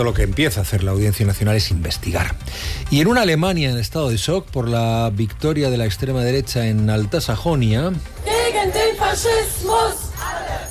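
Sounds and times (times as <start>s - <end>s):
speech: 0.0s - 10.0s
protest crowd chanting against fascism in Berlin: 8.2s - 10.6s.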